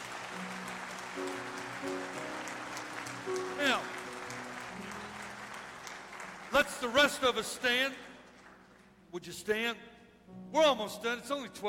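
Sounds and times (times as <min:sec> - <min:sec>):
audience clapping for a group of men: 0:00.0 - 0:09.0
speech: 0:06.6 - 0:08.1, 0:09.1 - 0:11.6.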